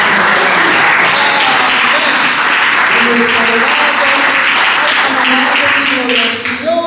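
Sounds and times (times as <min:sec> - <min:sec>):
audience applauding: 0:00.0 - 0:06.6
speech: 0:06.0 - 0:06.7.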